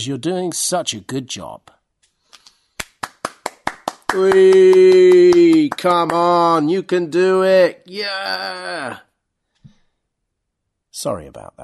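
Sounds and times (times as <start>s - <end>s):
speech: 0.0s - 1.8s, 4.1s - 9.1s, 11.0s - 11.6s
teacher clapping for students: 2.3s - 6.7s.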